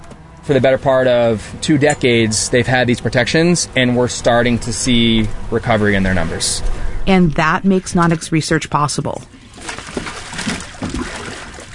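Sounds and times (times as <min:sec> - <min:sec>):
speech: 0:00.5 - 0:09.4
steady broadband wash: 0:02.8 - 0:11.7
water splashing as a baby shark thrashes inside a cooler on a boat deck: 0:05.7 - 0:11.7.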